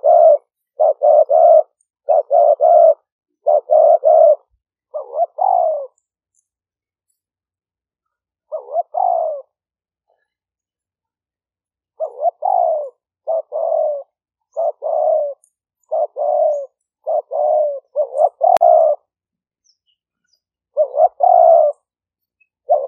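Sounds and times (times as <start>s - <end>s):
Spotted dove cooing: 0.0s - 6.1s, 8.4s - 10.4s, 11.9s - 19.2s, 20.7s - 22.0s, 22.6s - 22.8s.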